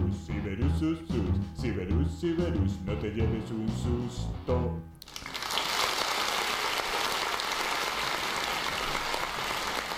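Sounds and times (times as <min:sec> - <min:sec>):
speech: 0:00.8 - 0:05.0
crowd applauding: 0:05.0 - 0:09.9.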